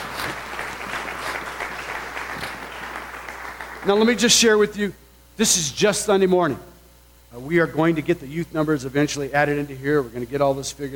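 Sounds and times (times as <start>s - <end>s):
large crowd clapping: 0.0s - 4.4s
speech: 3.8s - 6.7s, 7.3s - 10.9s.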